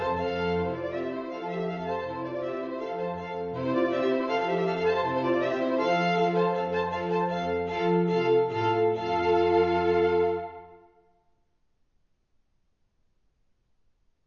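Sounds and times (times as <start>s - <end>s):
trio playing in F major: 0.0s - 10.8s.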